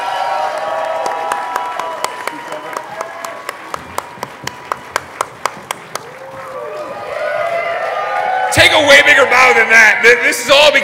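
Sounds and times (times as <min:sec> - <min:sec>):
audience applause and cheering at a live show standing ovation: 0:00.0 - 0:09.9
sharp individual claps: 0:01.0 - 0:06.2
speech: 0:08.8 - 0:10.8.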